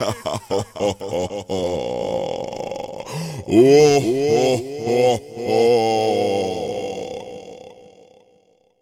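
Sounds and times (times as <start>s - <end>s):
satan laughing: 0.0s - 7.8s.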